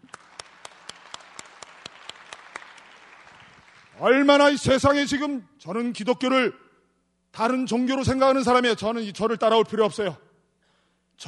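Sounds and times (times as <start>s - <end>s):
audience applause: 0.0s - 4.0s
speech: 4.0s - 6.6s, 7.4s - 10.3s.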